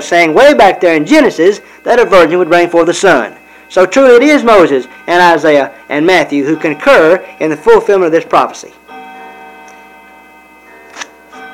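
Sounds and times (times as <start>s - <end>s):
speech: 0.0s - 8.9s
clocks striking: 0.0s - 11.5s.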